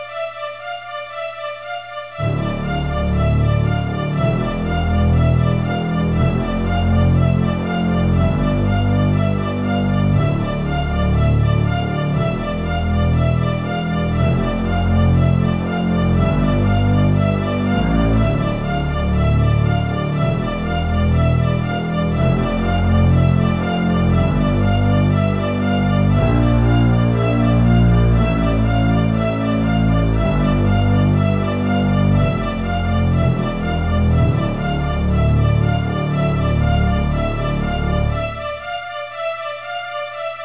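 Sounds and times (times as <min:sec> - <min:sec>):
suspense music: 0:00.0 - 0:40.4.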